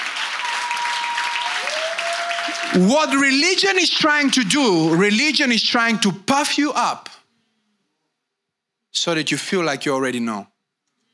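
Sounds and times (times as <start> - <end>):
crowd clapping: 0.0 - 5.5
speech: 2.6 - 7.2, 9.0 - 10.5.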